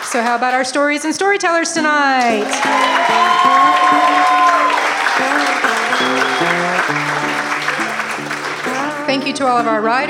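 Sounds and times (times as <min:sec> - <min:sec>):
audience applauding kitchen and wait staff at a cafe: 0:00.0 - 0:00.6, 0:02.2 - 0:09.1
speech: 0:00.1 - 0:07.3, 0:09.3 - 0:10.0
stepping melody: 0:01.8 - 0:10.0.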